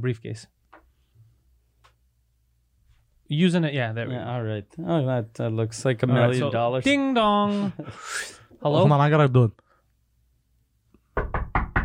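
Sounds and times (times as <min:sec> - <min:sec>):
speech: 0:00.0 - 0:00.6, 0:03.3 - 0:09.6
hard knocking on a door: 0:11.1 - 0:11.8.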